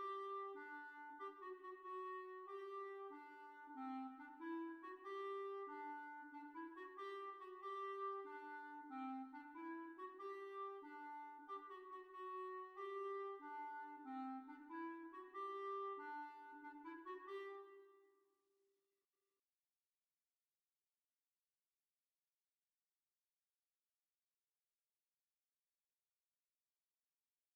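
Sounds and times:
dance piece on B flat clarinet: 0.0s - 17.9s.

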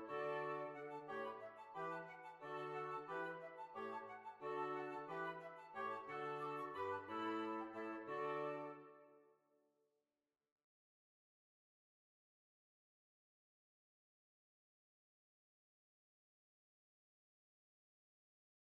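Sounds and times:
Swiss waltz: 0.0s - 9.0s.

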